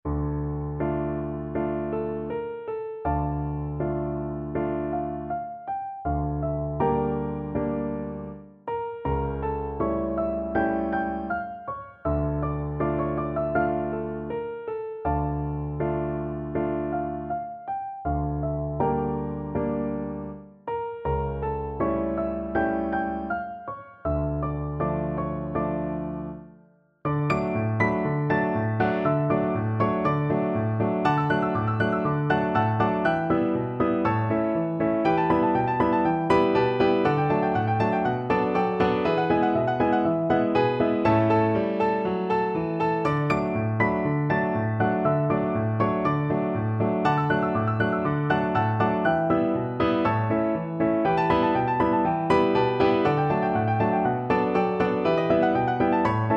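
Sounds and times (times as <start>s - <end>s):
piano duet: 0.0s - 56.3s.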